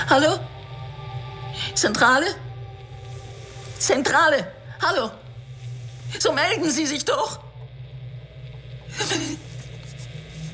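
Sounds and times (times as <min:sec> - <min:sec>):
speech: 0:00.1 - 0:00.6, 0:01.6 - 0:02.4, 0:03.8 - 0:05.2, 0:06.1 - 0:07.4, 0:09.0 - 0:09.5
radio static hiss: 0:02.6 - 0:10.5.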